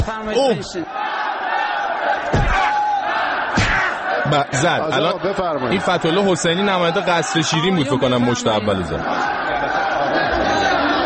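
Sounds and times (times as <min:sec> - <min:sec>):
speech: 0:00.0 - 0:01.0, 0:04.3 - 0:09.4
crowd in Iran's parliament chanting a slogan in unison: 0:00.8 - 0:11.0.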